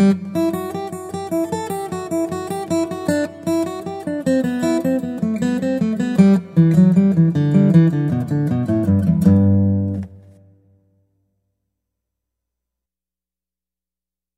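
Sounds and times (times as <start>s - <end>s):
guitar: 0.0s - 11.1s.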